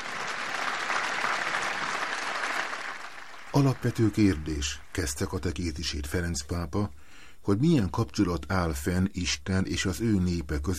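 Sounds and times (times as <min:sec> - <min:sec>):
audience applause: 0:00.0 - 0:05.0
speech: 0:03.6 - 0:10.7.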